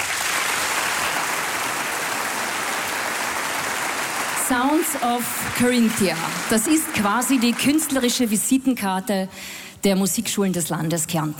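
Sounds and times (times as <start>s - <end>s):
audience applause in a concert hall: 0.0s - 8.6s
speech: 4.5s - 11.3s.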